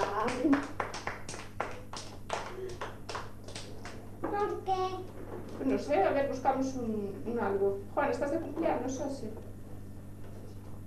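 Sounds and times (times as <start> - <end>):
audience applause: 0.0 - 4.0
speech: 5.8 - 9.5.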